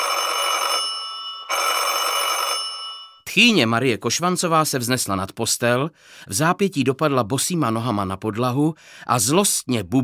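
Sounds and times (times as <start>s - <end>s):
electric doorbell ringing with harsh rattling metallic jangle: 0.0s - 3.3s
speech: 3.3s - 10.0s.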